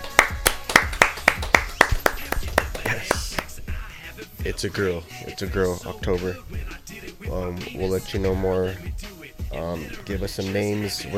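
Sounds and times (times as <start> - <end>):
applause: 0.0 - 3.5
speech: 4.5 - 8.9, 9.5 - 11.1.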